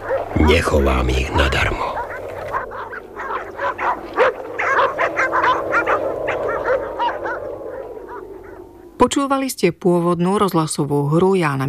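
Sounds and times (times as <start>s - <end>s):
several dogs whining and yipping at a house: 0.0s - 0.3s, 1.8s - 9.0s
speech: 0.5s - 1.9s, 9.2s - 11.6s.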